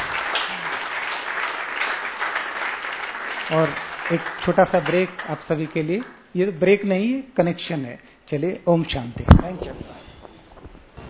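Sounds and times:
audience applause: 0.0s - 5.9s
speech: 3.5s - 10.0s.

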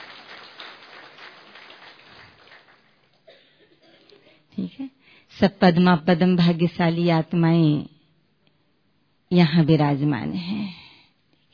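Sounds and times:
audience clapping: 0.0s - 3.3s
speech: 4.6s - 7.9s, 9.3s - 10.8s.

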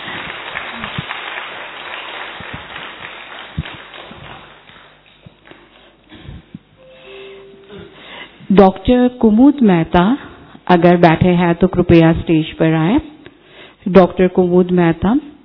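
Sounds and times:
crowd clapping: 0.0s - 6.1s
speech: 8.6s - 13.1s, 13.8s - 15.3s.

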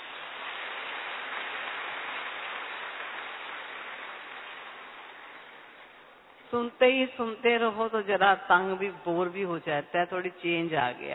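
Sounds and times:
audience clapping: 0.0s - 6.3s
speech: 6.5s - 11.1s.

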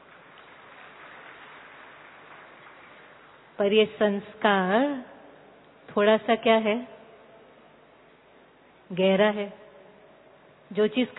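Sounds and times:
audience clapping: 0.0s - 3.6s
speech: 3.6s - 5.1s, 6.0s - 7.0s, 8.9s - 9.6s, 10.7s - 11.1s.

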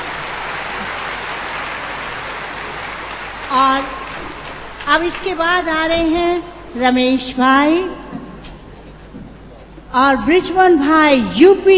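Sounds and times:
audience applause: 0.0s - 4.9s
speech: 3.5s - 4.0s, 4.9s - 8.1s, 9.9s - 11.7s.

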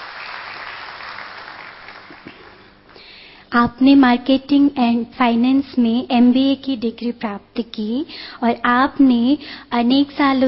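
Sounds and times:
audience applause welcoming a professor: 0.0s - 2.7s
speech: 3.5s - 10.4s.

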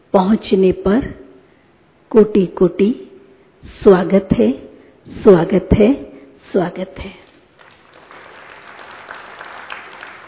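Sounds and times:
speech: 0.1s - 1.2s, 2.1s - 7.2s
crowd applauding: 7.6s - 10.2s.

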